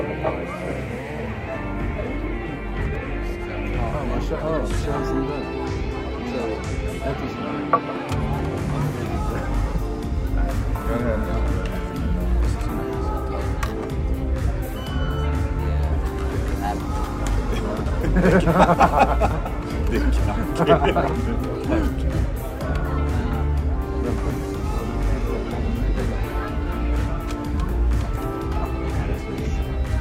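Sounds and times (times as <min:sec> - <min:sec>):
overlapping voices and chatter in a bar: 0:00.0 - 0:29.9
laughter: 0:16.3 - 0:27.1.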